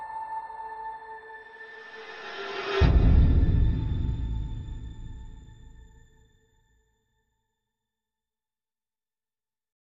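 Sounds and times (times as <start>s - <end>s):
drums: 2.7s - 6.1s.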